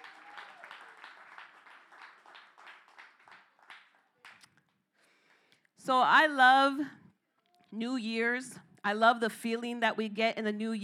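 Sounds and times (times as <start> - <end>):
crowd applauding: 0.0 - 4.5
speech: 5.9 - 7.0, 7.7 - 10.8.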